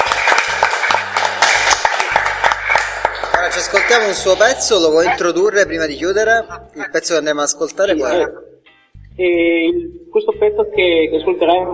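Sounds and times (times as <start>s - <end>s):
applause: 0.0s - 4.6s
speech: 3.6s - 8.5s, 9.2s - 11.7s.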